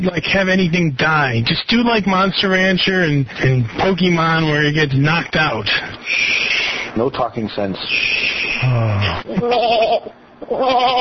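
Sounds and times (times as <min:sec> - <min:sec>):
speech: 0:00.0 - 0:10.9
person imitating sheep bleats: 0:08.6 - 0:10.9.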